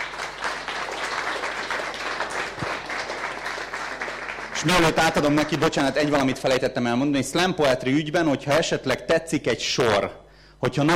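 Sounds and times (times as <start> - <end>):
audience applause: 0.0 - 6.1
speech: 4.6 - 10.9.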